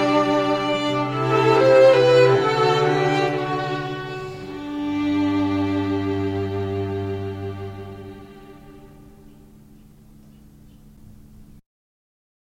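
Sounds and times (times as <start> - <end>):
string trio playing: 0.0 - 9.8.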